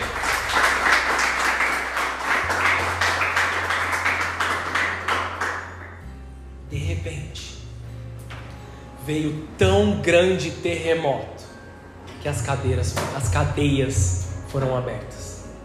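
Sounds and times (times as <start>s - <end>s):
audience applauding: 0.0s - 6.0s
speech: 9.1s - 11.4s, 12.2s - 15.2s.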